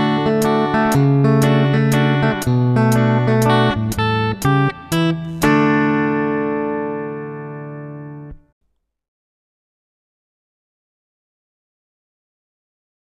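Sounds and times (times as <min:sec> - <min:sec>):
rhythm guitar: 0:00.0 - 0:08.5.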